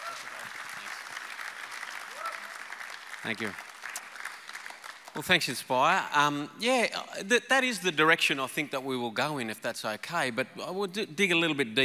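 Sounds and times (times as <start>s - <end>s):
audience applause at the Inspire faith gathering welcoming speakers: 0.0s - 5.4s
speech: 3.2s - 3.7s, 5.2s - 11.8s.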